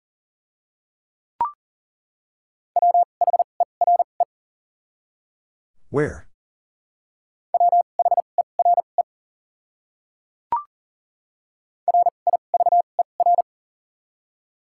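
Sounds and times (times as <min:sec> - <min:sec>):
Morse code beeps at high speed: 0:02.8 - 0:04.1, 0:07.6 - 0:09.0, 0:11.9 - 0:13.4
speech: 0:05.9 - 0:06.3.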